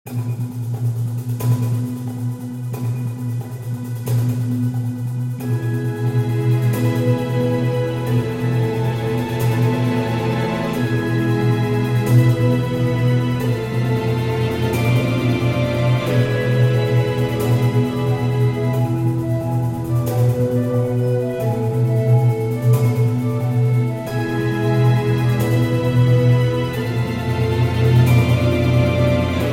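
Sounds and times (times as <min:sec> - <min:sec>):
orchestral arrangement: 0:00.1 - 0:29.5.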